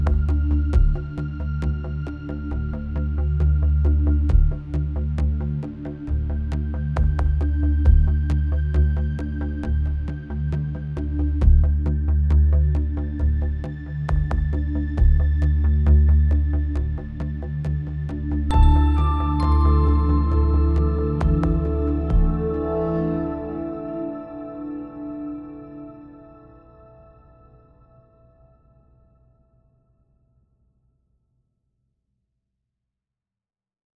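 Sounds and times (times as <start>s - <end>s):
dark tense music: 0.0s - 27.1s.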